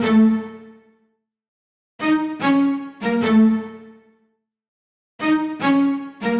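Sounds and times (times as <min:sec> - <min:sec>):
horror cellos at 75 bpm: 0:00.0 - 0:00.9, 0:02.0 - 0:04.1, 0:05.2 - 0:06.3.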